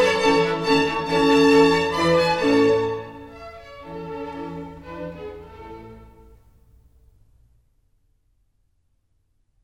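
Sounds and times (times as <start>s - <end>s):
minuet in A major: 0.0s - 6.7s.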